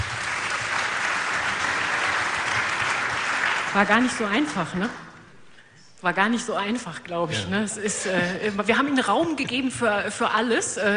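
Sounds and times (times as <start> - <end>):
audience applause: 0.0 - 4.6
speech: 3.7 - 5.0, 6.0 - 10.9.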